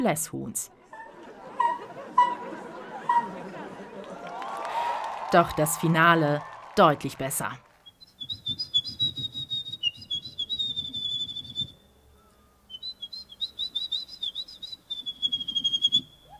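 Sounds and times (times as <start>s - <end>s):
speech: 0.0s - 0.8s, 5.3s - 7.6s
laughter: 0.8s - 5.9s
person whistling an imitation of a wren's song: 7.8s - 11.8s, 12.7s - 16.3s.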